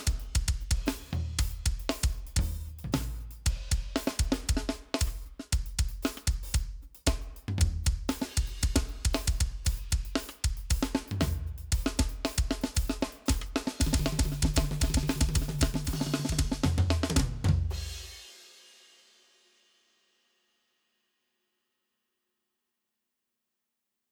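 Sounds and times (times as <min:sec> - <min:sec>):
drum rhythm: 0:00.0 - 0:18.6.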